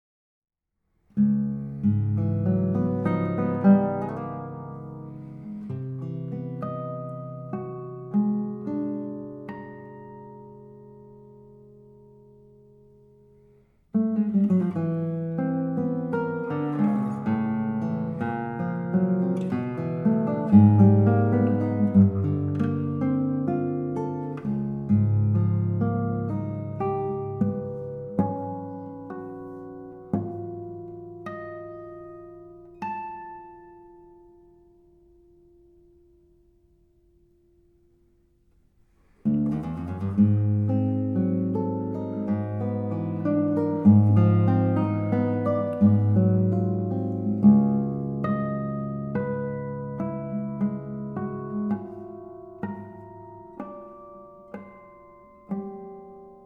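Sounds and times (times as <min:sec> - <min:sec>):
guitar prelude: 0:01.2 - 0:38.6, 0:39.2 - 0:56.4.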